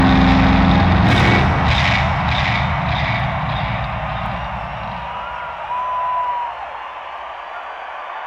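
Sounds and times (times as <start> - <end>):
bass solo: 0.0 - 5.7.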